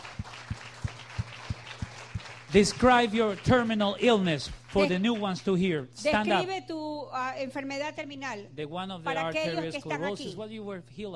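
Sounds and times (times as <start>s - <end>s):
audience clapping for the Lord: 0.0s - 6.3s
speech: 2.5s - 11.1s.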